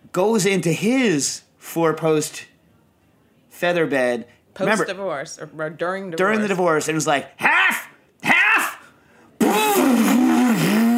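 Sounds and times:
speech: 0:00.2 - 0:02.5, 0:03.6 - 0:07.9
voice imitating a revving chainsaw: 0:09.4 - 0:10.9.

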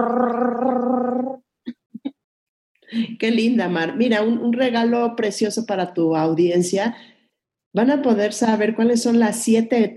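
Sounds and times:
speech: 0:00.0 - 0:00.6, 0:03.2 - 0:07.1, 0:07.7 - 0:09.9
vocal imitation of a drumroll: 0:00.0 - 0:01.4.

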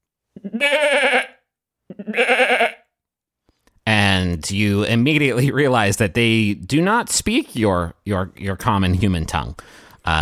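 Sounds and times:
speech: 0:00.4 - 0:01.3, 0:04.4 - 0:10.1
human voice imitating a goat bleating: 0:00.4 - 0:02.9.

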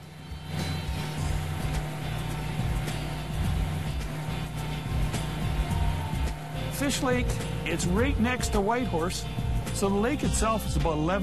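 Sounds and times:
motorboat cruising across a lake: 0:00.0 - 0:11.2
speech: 0:06.8 - 0:11.2.

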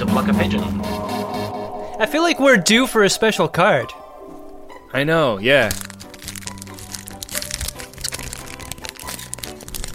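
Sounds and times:
speech: 0:00.2 - 0:01.2, 0:02.0 - 0:04.0, 0:04.9 - 0:05.9
plastic wrapping crinkling as it is peeled off card packs: 0:05.4 - 0:09.9.

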